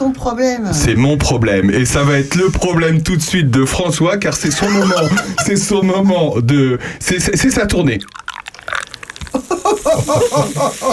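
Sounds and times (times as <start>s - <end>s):
speech: 0.1s - 8.2s, 9.3s - 10.9s
laughter: 4.4s - 5.9s, 9.3s - 10.9s
sparkling water being poured into a glass: 7.9s - 10.9s.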